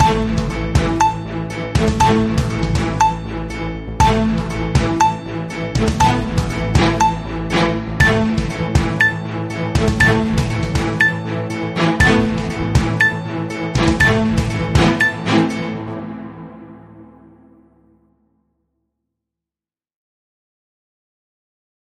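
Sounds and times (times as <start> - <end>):
modern news music: 0.0 - 18.3.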